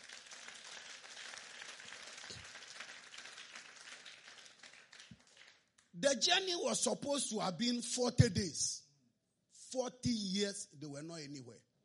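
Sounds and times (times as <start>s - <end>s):
audience applauding: 0.0s - 5.9s
speech: 6.0s - 8.8s, 9.7s - 11.7s.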